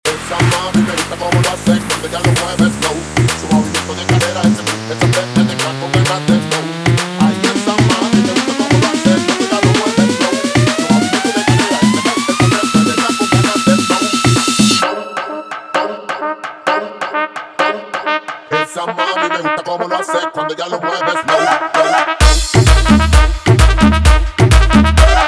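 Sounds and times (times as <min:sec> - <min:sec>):
guaracha remix music: 0:00.0 - 0:25.2.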